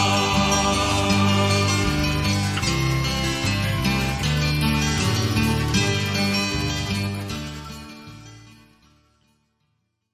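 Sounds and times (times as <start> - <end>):
old men marching: 0.1 - 7.5.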